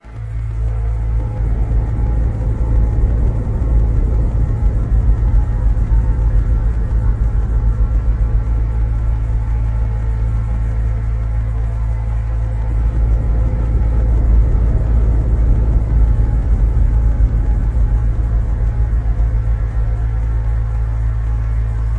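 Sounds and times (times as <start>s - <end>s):
black hole deep rumbling: 0.0s - 21.9s.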